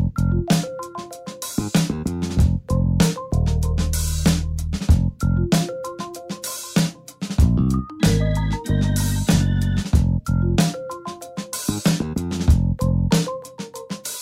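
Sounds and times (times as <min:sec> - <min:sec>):
rap backing track: 0:00.2 - 0:14.2.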